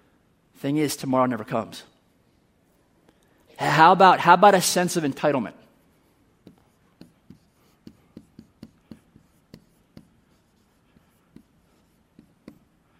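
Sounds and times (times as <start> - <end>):
speech: 0.6 - 1.9, 3.6 - 5.6
pen scratching during quick handwriting: 6.0 - 12.8.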